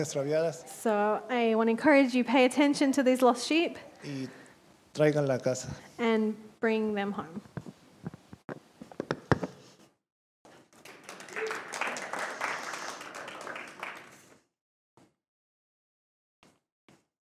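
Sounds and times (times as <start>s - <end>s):
speech: 0.0s - 4.4s, 5.0s - 7.6s
audience applause: 10.8s - 14.4s.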